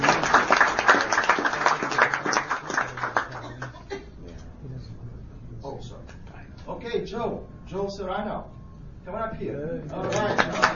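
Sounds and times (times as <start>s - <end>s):
crowd applause: 0.0s - 3.7s, 10.0s - 10.7s
people chuckling: 3.3s - 4.3s
speech: 8.0s - 10.7s.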